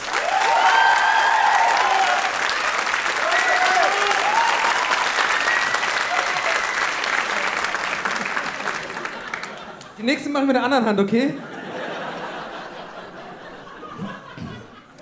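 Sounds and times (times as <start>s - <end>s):
whoops and cheers: 0.0s - 7.0s
audience applause: 0.0s - 10.0s
laughter: 7.3s - 10.0s, 11.4s - 15.0s
speech: 10.3s - 11.5s.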